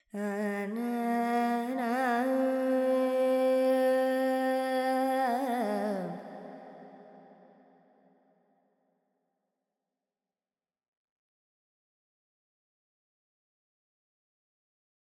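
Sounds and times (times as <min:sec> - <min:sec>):
Carnatic female vocal alap in Lydian mode with effects: 0:00.0 - 0:07.4.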